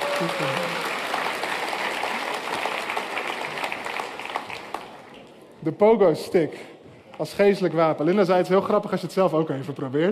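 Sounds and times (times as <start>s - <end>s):
warm crowd applause: 0.0s - 5.4s
speech: 0.2s - 0.7s, 5.6s - 10.1s.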